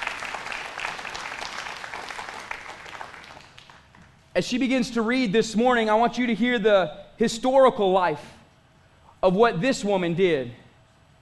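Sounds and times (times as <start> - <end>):
audience applause: 0.0 - 4.1
speech: 4.4 - 8.4, 9.2 - 10.6.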